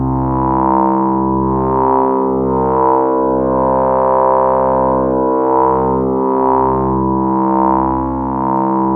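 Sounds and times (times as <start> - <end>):
ring-modulated synth pads: 0.0 - 8.9.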